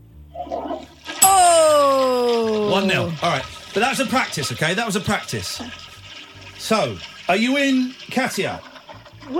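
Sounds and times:
toilet flushing: 1.8s - 9.3s
speech: 2.8s - 5.9s, 6.6s - 8.7s.

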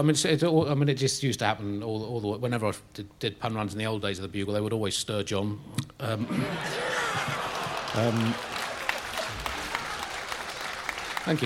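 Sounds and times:
speech: 0.0s - 8.6s, 11.2s - 11.4s
laughter: 6.1s - 11.4s
audience applause: 6.2s - 11.4s.

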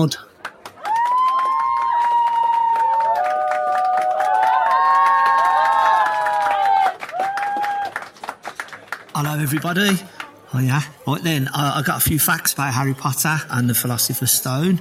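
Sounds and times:
speech: 0.0s - 0.3s, 9.2s - 14.7s
audience cheering and applauding to welcome a comedian on stage: 0.4s - 10.0s.

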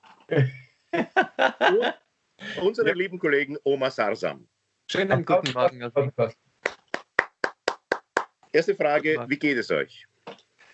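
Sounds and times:
laughter: 0.3s - 3.3s, 5.0s - 6.3s
speech: 0.3s - 6.4s, 8.5s - 10.1s
applause, hand clapping: 5.0s - 5.7s, 6.6s - 8.4s.

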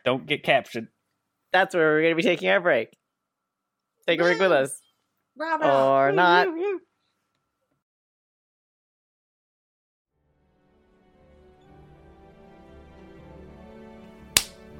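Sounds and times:
speech: 0.0s - 3.0s, 4.0s - 4.8s, 5.4s - 6.9s
single hand clap as an intermission cue: 14.4s - 14.6s.

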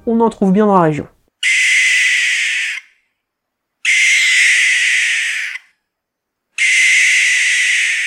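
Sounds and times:
speech: 0.0s - 1.2s
barn owl screeching: 1.4s - 3.0s, 3.8s - 5.8s, 6.6s - 8.0s.

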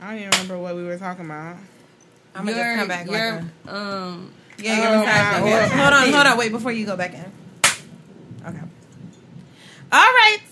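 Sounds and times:
speech: 0.2s - 7.4s, 8.4s - 8.7s, 9.9s - 10.5s
laughter: 5.1s - 6.4s
hand clap as editing marker: 7.6s - 7.9s.

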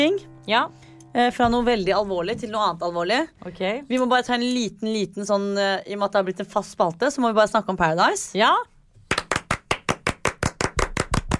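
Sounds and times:
speech: 0.0s - 9.2s
hosts clapping their hands: 9.1s - 11.3s.

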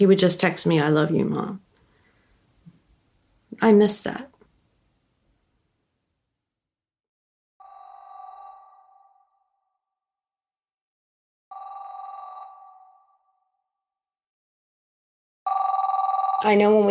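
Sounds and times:
speech: 0.0s - 1.7s, 3.5s - 4.3s, 16.4s - 16.9s
house telephone ringing: 7.6s - 9.8s, 11.5s - 13.6s, 15.5s - 16.9s.

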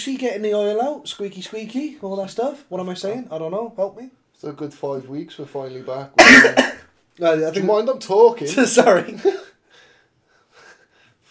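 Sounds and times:
speech: 0.0s - 9.5s
breathy coughs: 6.2s - 6.9s.

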